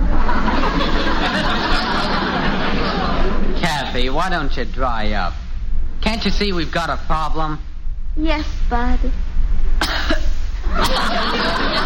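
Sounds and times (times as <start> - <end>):
laughter: 0.0 - 4.0, 10.6 - 11.8
hiss: 0.0 - 11.8
speech: 4.2 - 5.4, 6.0 - 9.3, 10.1 - 11.8
girl's deliberately phony coughing: 9.8 - 10.3.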